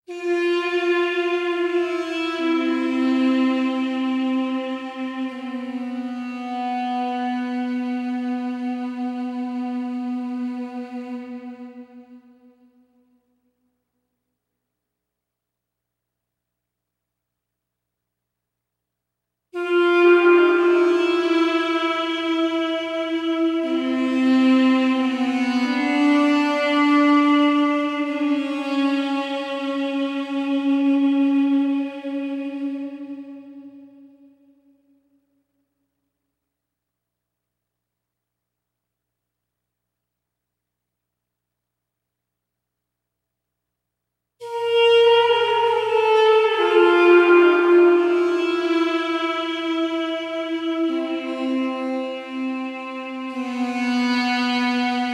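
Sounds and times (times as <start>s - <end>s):
ethnic solo instrument: 0.1s - 13.3s, 19.6s - 35.4s, 44.4s - 55.1s.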